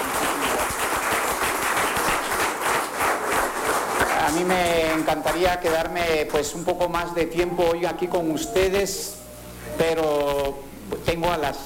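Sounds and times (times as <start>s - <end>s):
audience applause: 0.0s - 5.9s
speech: 4.3s - 9.2s, 9.8s - 11.6s.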